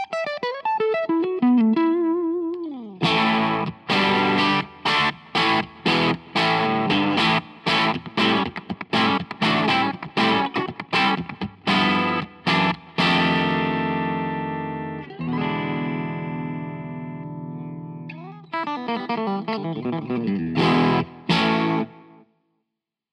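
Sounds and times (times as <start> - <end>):
Stratocaster electric guitar through overdrive pedal: 0.0 - 22.2.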